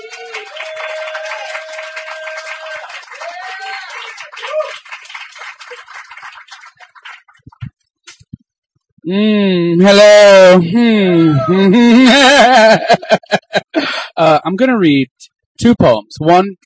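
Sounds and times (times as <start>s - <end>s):
audience applause at a poetry reading: 0.0s - 7.6s
speech: 9.1s - 13.3s, 14.2s - 16.6s
laughter: 10.5s - 14.2s.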